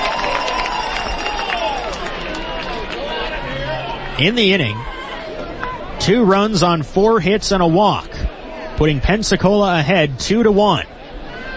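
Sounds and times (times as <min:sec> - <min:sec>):
stadium crowd giving a Bronx cheer: 0:00.0 - 0:06.8
speech: 0:04.2 - 0:04.9, 0:06.0 - 0:08.2, 0:08.8 - 0:10.9.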